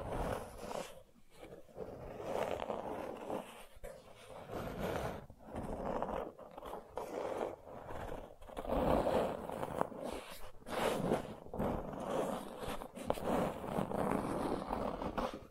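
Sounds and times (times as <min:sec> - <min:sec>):
gentle scratching: 0:00.0 - 0:15.4.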